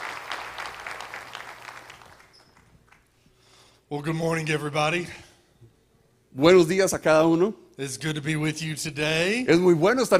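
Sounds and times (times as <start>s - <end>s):
church congregation applauding to welcome a pastor: 0.0s - 3.2s
speech: 3.9s - 5.3s, 6.4s - 10.1s.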